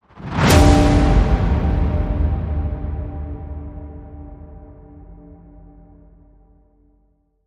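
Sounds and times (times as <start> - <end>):
dark church hit: 0.1 - 6.8.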